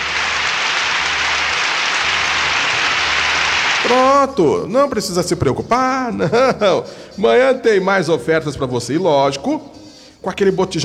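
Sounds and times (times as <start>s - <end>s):
applause: 0.0s - 4.0s
speech: 3.9s - 10.8s.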